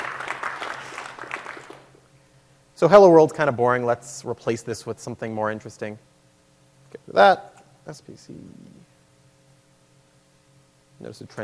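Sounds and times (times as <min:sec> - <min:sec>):
audience applause: 0:00.0 - 0:01.9
speech: 0:02.8 - 0:06.1, 0:07.0 - 0:08.8, 0:11.0 - 0:11.4.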